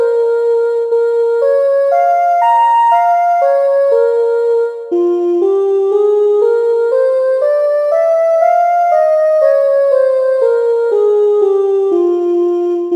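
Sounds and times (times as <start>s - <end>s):
melodic minor scale exercise: 0.0s - 12.9s.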